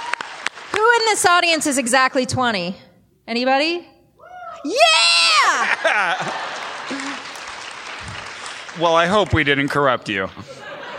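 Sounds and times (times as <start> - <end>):
audience cheering and whoops: 0.0 - 0.4, 4.2 - 6.3
audience applause: 0.0 - 0.8, 5.6 - 10.0
speech: 1.0 - 3.9, 4.6 - 7.0, 8.8 - 10.6
laughter: 5.4 - 7.5, 10.2 - 10.9.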